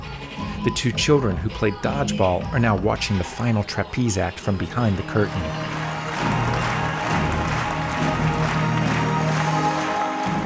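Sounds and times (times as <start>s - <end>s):
speech: 0.6s - 6.4s
rapturous applause for performers' bow: 5.2s - 10.4s.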